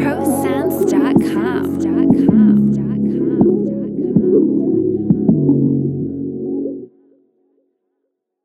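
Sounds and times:
chopped R&B music: 0.0 - 6.6.

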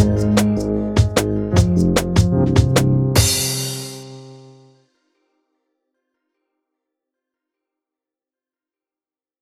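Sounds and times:
small drum and bass loop: 0.0 - 4.6.

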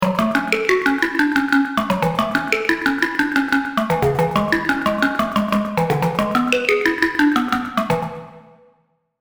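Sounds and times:
Vital synthesizer presets: 0.0 - 8.4.

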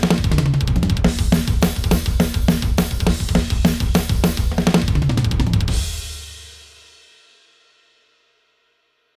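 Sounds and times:
iron snare drum: 0.0 - 6.8.

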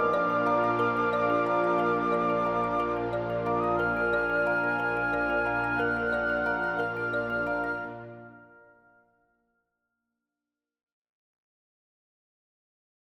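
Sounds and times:
kalimba: 0.0 - 8.4.

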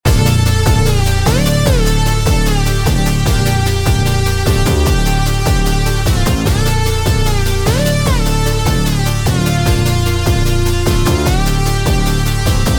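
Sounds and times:
future bass music: 0.0 - 12.7.

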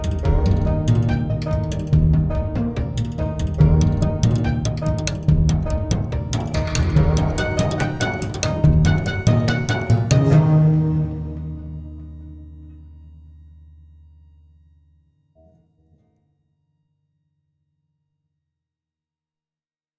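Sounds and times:
bass banjo: 0.0 - 13.3.

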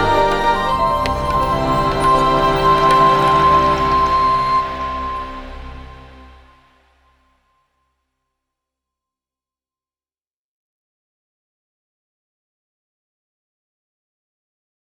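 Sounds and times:
rainforest ambience: 0.0 - 6.7.

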